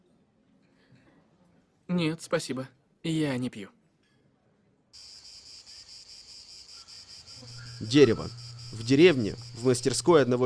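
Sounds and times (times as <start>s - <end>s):
speech: 2.0s - 3.8s, 7.8s - 10.4s
cicadas singing: 5.0s - 10.4s.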